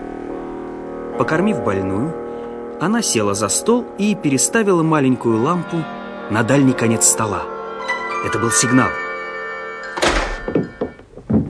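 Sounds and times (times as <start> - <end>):
speech: 1.2 - 2.2, 2.8 - 7.5, 8.2 - 9.0
door kicked open with a boot: 10.0 - 11.4
knocks and bumps: 10.0 - 11.4.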